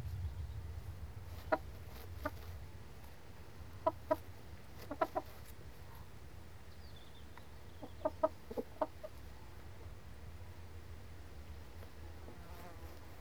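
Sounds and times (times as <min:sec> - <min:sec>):
low background hum: 0:00.0 - 0:12.3
chickens clucking: 0:01.3 - 0:02.6, 0:03.6 - 0:06.1, 0:07.6 - 0:09.9.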